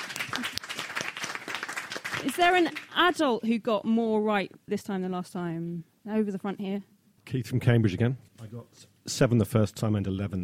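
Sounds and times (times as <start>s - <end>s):
audience applause: 0.0s - 3.0s
speech: 0.4s - 0.6s, 2.2s - 10.4s.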